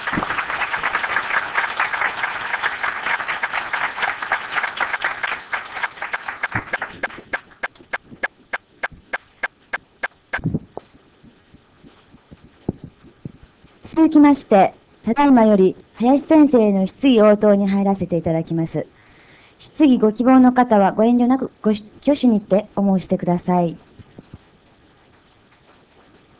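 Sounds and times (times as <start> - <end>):
audience applause: 0.0 - 8.1
speech: 14.0 - 19.0, 19.6 - 23.8.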